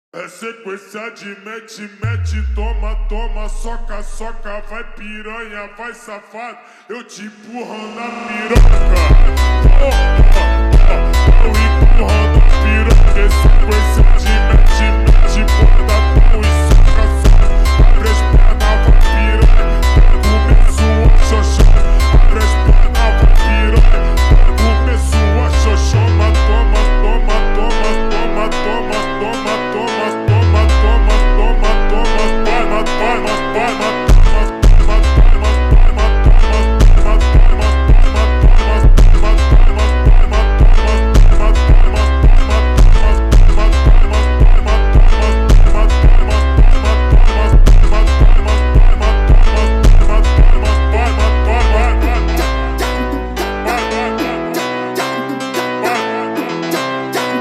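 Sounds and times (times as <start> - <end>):
slowed funk music with reverb: 2.0 - 5.6, 7.7 - 57.4.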